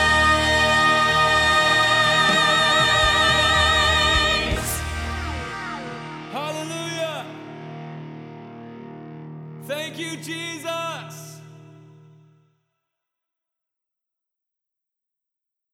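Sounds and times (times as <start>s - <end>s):
soprano singing in rehearsal: 0.0s - 7.3s.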